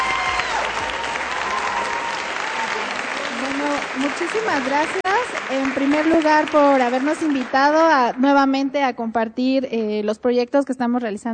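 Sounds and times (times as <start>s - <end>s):
audience applause: 0.0s - 8.2s
speech: 4.0s - 11.3s.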